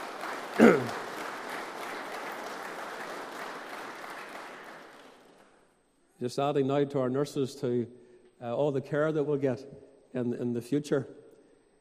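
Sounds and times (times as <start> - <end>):
soft round of applause in a church: 0.0 - 5.8
speech: 0.6 - 1.0, 6.2 - 11.2.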